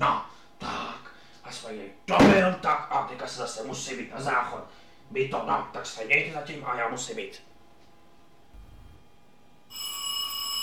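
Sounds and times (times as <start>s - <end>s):
speech: 0.0s - 0.7s, 1.5s - 7.5s
doorbell ringing: 9.7s - 10.6s.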